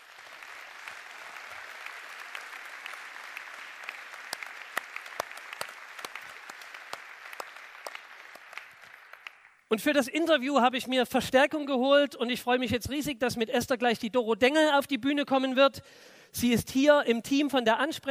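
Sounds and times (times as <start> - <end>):
crowd clapping: 0.0 - 9.7
speech: 9.7 - 18.0.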